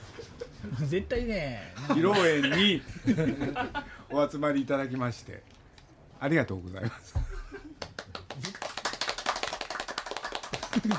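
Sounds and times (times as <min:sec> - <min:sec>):
speech: 0:00.8 - 0:05.6, 0:06.2 - 0:07.2
laughter: 0:01.8 - 0:04.0, 0:10.6 - 0:10.9
small group applauding: 0:07.8 - 0:10.9.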